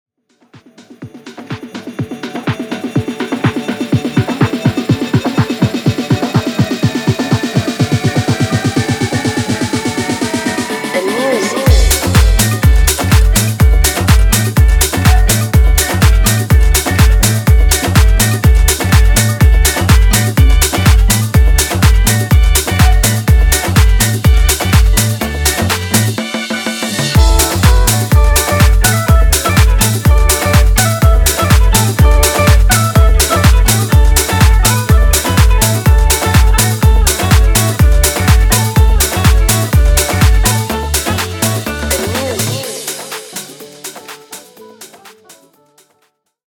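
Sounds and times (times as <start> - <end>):
techno remix: 0.3 - 45.6.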